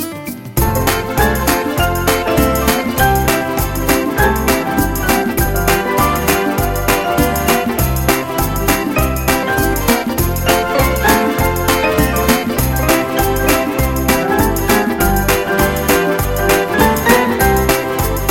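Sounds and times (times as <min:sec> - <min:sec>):
mambo dance music: 0:00.0 - 0:18.3.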